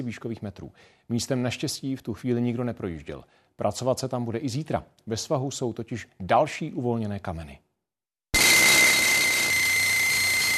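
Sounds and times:
speech: 0:00.0 - 0:07.6
pneumatic drills breaking a boulder: 0:08.4 - 0:10.5.

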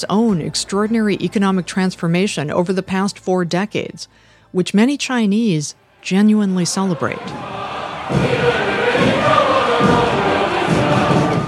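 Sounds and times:
speech: 0:00.0 - 0:08.5
crowd cheering at military parade: 0:06.7 - 0:11.4.

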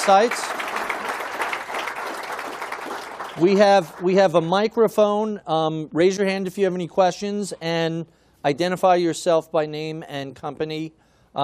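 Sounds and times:
speech: 0:00.0 - 0:00.6, 0:03.4 - 0:11.4
audience applause for a speaker after a talk: 0:00.0 - 0:04.0.

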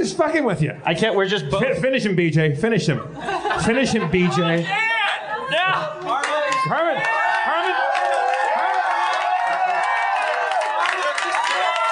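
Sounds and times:
speech: 0:00.1 - 0:04.9, 0:05.5 - 0:07.2
laughter: 0:03.0 - 0:06.3
crowd cheering: 0:04.2 - 0:11.9.

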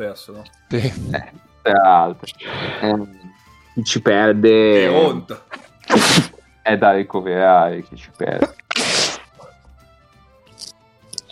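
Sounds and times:
speech: 0:00.0 - 0:08.6
laughter: 0:00.7 - 0:01.4
breathy sniffs: 0:02.3 - 0:03.0, 0:05.5 - 0:06.4, 0:08.7 - 0:09.6
person sneezing: 0:04.8 - 0:06.4, 0:08.4 - 0:09.6.

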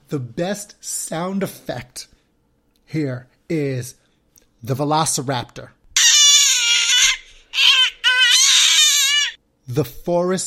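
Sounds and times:
speech: 0:00.1 - 0:02.2, 0:02.9 - 0:04.0, 0:04.6 - 0:05.8, 0:09.7 - 0:10.4
baby crying: 0:06.0 - 0:09.4.

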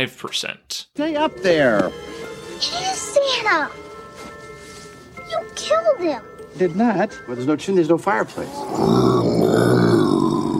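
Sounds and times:
speech: 0:00.0 - 0:03.8, 0:05.3 - 0:09.7
person growling: 0:08.4 - 0:10.5.

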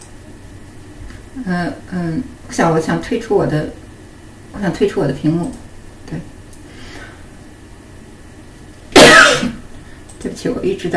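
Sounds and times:
speech: 0:01.4 - 0:03.8, 0:04.6 - 0:06.3, 0:10.4 - 0:10.9
person coughing: 0:09.0 - 0:09.6.

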